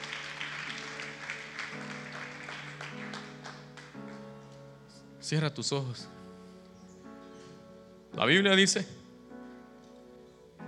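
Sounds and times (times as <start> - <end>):
audience clapping: 0.0 - 4.6
speech: 5.3 - 6.2, 8.2 - 9.0.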